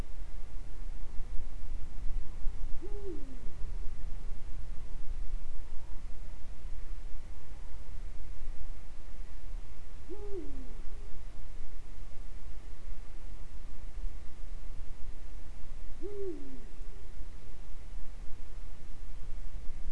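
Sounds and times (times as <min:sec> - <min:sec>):
low background rumble: 0:00.0 - 0:19.8
Eurasian eagle-owl hooting: 0:02.8 - 0:03.5, 0:10.1 - 0:11.1, 0:16.0 - 0:16.7.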